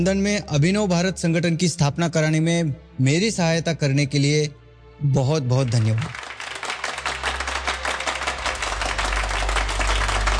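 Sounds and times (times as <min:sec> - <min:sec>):
speech: 0:00.0 - 0:06.2
crowd applauding: 0:05.7 - 0:10.3.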